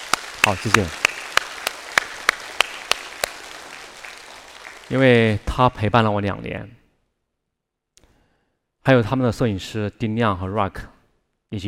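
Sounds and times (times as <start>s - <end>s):
audience applause: 0.0s - 5.5s
speech: 0.4s - 1.0s, 4.9s - 6.8s, 8.8s - 10.9s.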